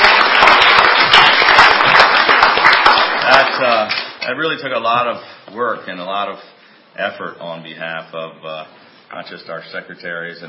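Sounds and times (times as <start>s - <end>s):
crowd applauding: 0.0s - 4.2s
speech: 4.2s - 10.4s.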